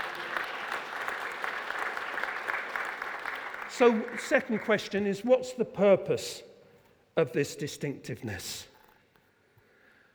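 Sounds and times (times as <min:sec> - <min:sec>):
audience applause: 0:00.0 - 0:04.9
speech: 0:03.8 - 0:06.5, 0:07.2 - 0:08.7.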